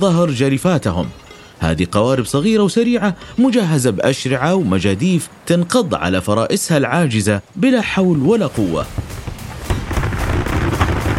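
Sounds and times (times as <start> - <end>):
speech: 0.0 - 9.2
cannon shots fired from a pirate ship: 8.9 - 11.1.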